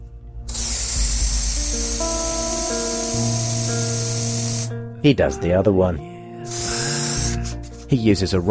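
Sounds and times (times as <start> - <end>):
antiperspirant aerosol sprayed inside the front of a vest: 0.5 - 4.7, 6.5 - 7.8
speech: 5.0 - 6.1, 7.9 - 8.4.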